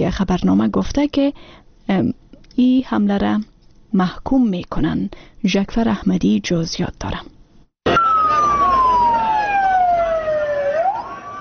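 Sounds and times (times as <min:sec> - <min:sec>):
speech: 0:00.1 - 0:07.3
ambulance siren after an attack on a university in northwest Pakistan: 0:07.8 - 0:11.3.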